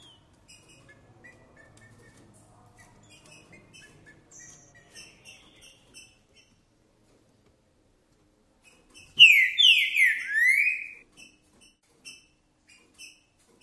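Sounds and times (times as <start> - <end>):
green-winged saltator whistled song: 9.2 - 11.0.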